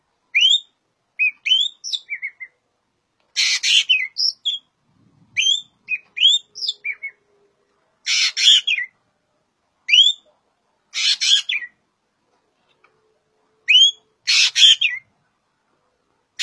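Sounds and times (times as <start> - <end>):
green magpie calling: 0.4 - 2.5, 3.3 - 4.7, 5.4 - 7.2, 8.0 - 9.0, 10.9 - 11.8, 13.7 - 15.1.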